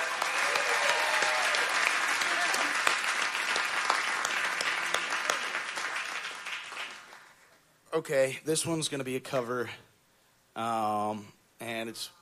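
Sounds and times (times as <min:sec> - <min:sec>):
audience applause: 0:00.0 - 0:07.5
speech: 0:08.0 - 0:09.9, 0:10.6 - 0:12.2.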